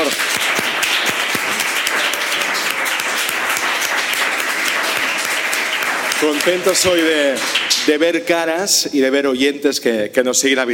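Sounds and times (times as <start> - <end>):
live audience applause: 0.0 - 8.2
speech: 6.2 - 10.7.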